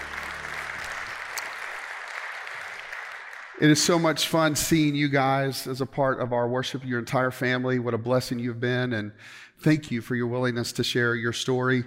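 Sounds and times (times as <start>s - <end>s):
crowd applauding: 0.0s - 4.3s
speech: 3.6s - 11.8s.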